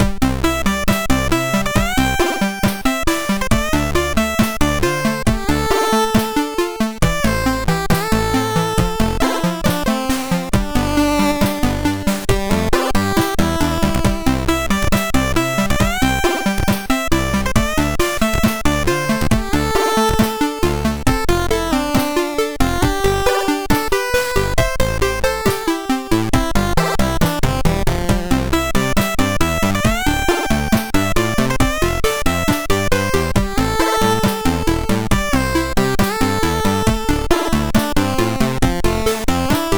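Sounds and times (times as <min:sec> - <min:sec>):
SID MOS6581R3 chiptune intro music: 0:00.0 - 0:39.7.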